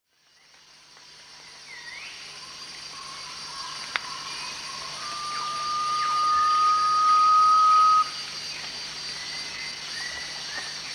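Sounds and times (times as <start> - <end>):
Garnet pitta giving one long level whistle at Danum: 4.8 - 8.2.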